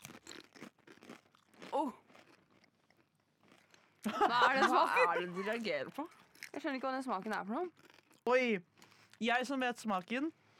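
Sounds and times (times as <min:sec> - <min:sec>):
crunching potato chips while taste-testing: 0:00.0 - 0:04.0, 0:07.7 - 0:09.2
speech: 0:01.8 - 0:02.0, 0:04.1 - 0:10.4
laughter: 0:04.1 - 0:05.6.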